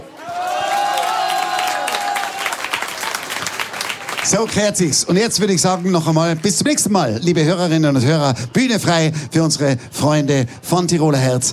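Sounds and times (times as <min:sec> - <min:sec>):
audience applause: 0:00.0 - 0:06.6
speech: 0:04.3 - 0:11.5.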